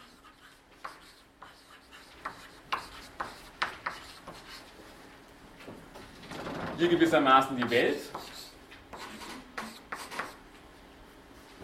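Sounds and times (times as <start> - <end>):
lecturer writing on a board: 0.0 - 4.7, 7.6 - 10.4
faint steady hum: 0.0 - 11.6
speech: 6.8 - 8.2.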